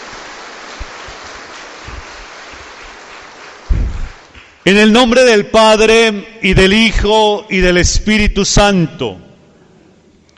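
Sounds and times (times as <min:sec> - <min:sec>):
audience applause: 0:00.0 - 0:04.6
speech: 0:04.7 - 0:09.2.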